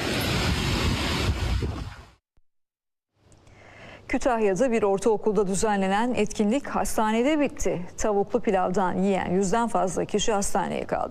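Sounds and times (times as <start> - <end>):
strong wind buffeting a mobile phone microphone in Su Düğünü village in Bingöl: 0.0 - 2.2
speech: 4.1 - 11.0.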